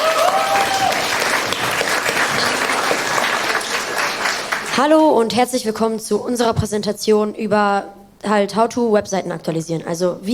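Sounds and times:
audience applause: 0.0 - 4.8
speech: 4.8 - 10.3.

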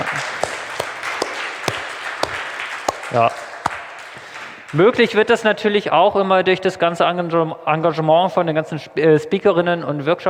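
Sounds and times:
isolated hand claps at a hybrid event: 0.0 - 5.1
speech: 3.1 - 3.5, 4.7 - 10.2.

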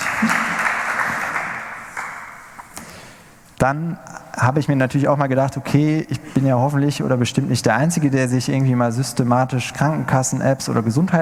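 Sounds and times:
audience applause: 0.0 - 2.5
speech: 0.2 - 0.5, 3.6 - 11.2.

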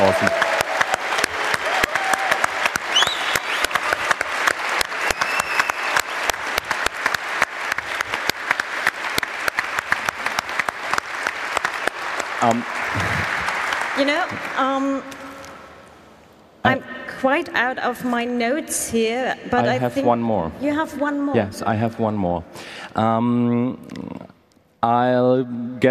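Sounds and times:
audience applause: 0.0 - 15.2
speech: 0.1 - 0.5, 17.2 - 23.8, 24.8 - 25.8.

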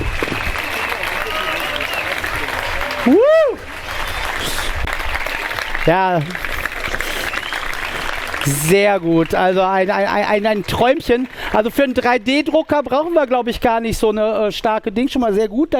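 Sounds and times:
person whooping: 0.0 - 3.7
audience applause: 0.0 - 13.2
speech: 3.1 - 3.4, 5.9 - 6.5, 8.4 - 15.7.

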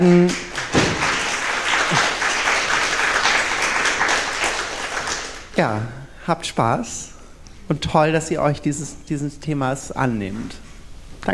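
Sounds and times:
speech: 0.0 - 0.5, 5.6 - 7.1, 7.7 - 10.6
audience applause: 0.2 - 5.5.

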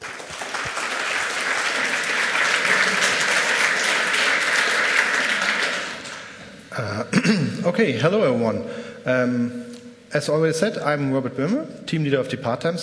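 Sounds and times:
audience applause: 0.0 - 6.6
speech: 6.8 - 12.8.

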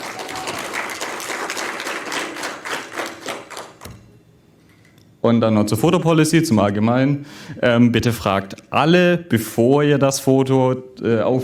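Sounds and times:
audience applause: 0.0 - 3.9
speech: 5.2 - 11.4.

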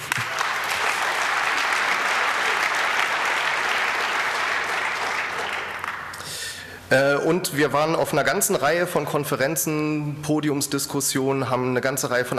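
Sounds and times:
audience applause: 0.0 - 6.2
speech: 6.9 - 12.3.

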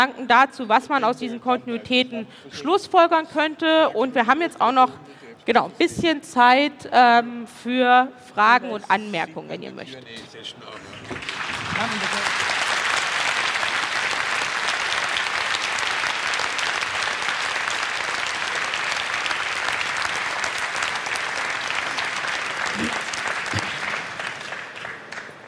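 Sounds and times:
speech: 0.0 - 12.6
audience applause after a talk: 10.7 - 25.4.

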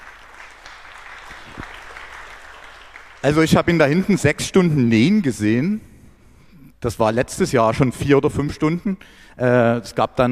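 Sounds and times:
audience clapping: 0.0 - 4.1
speech: 3.2 - 5.9, 6.8 - 10.3.

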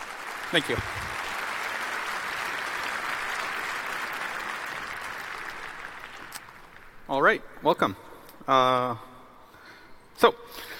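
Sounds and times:
audience applause: 0.0 - 7.1
speech: 0.5 - 1.0, 7.1 - 9.1, 10.2 - 10.7.

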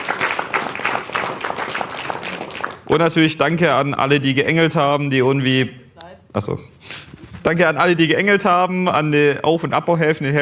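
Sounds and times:
audience applause at a community tech event: 0.0 - 2.9
speech: 2.9 - 10.3.

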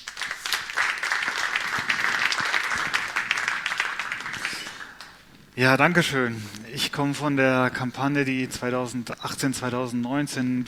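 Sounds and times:
audience applause: 0.0 - 5.6
speech: 5.6 - 10.6.

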